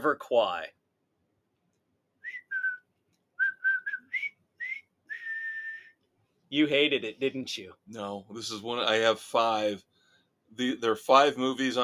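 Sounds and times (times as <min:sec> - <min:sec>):
speech: 0:00.0 - 0:00.8, 0:06.5 - 0:09.9, 0:10.5 - 0:11.8
person whistling a jaunty march tune from a war film: 0:02.2 - 0:06.0.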